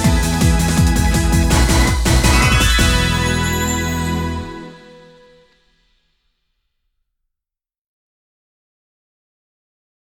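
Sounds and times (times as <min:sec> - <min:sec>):
instrumental off-vocal music: 0:00.0 - 0:05.6.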